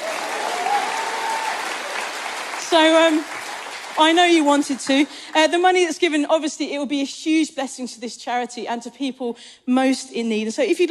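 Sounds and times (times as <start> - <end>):
audience applause: 0.0 - 5.2
speech: 2.7 - 3.4, 4.0 - 10.8.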